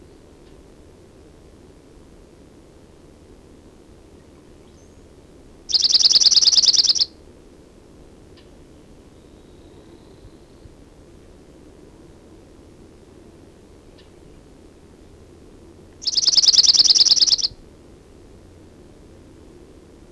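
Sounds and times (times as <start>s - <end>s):
Chipping Sparrow singing a rapid level trill of dry chips: 5.7s - 7.1s, 16.0s - 17.6s.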